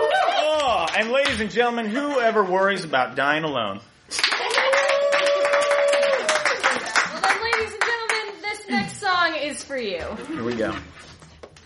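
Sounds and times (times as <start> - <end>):
audience cheering at a live show: 0.0 - 1.3, 4.2 - 7.7
audience clapping at a live show: 0.0 - 1.6, 4.1 - 8.6
speech: 1.0 - 4.2, 9.5 - 11.0.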